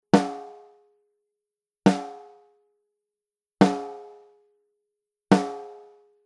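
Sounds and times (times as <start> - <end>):
snare drum: 1.9 - 2.3, 3.6 - 4.1, 5.3 - 5.9.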